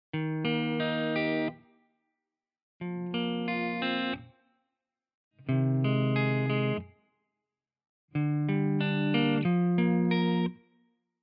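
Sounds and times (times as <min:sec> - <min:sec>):
Les Paul electric guitar: 0:00.2 - 0:01.6, 0:02.8 - 0:04.3, 0:05.4 - 0:06.9, 0:08.2 - 0:10.6.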